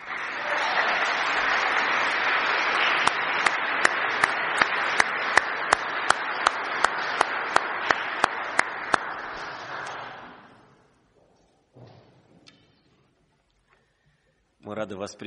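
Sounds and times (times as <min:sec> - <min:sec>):
audience applause: 0:00.0 - 0:10.7.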